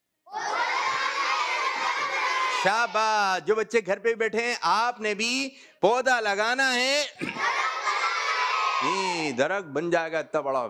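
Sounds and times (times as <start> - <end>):
children at a tree-planting gathering shouting a slogan in unison: 0.3 - 3.0, 7.3 - 9.4
speech: 2.6 - 7.7, 8.8 - 10.6.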